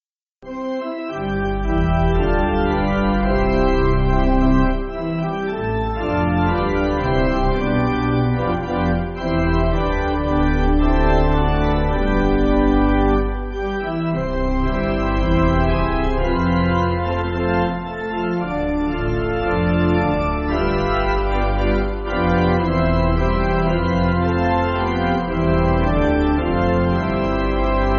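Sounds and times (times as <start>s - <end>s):
pipe organ church backing music: 0.4s - 27.9s.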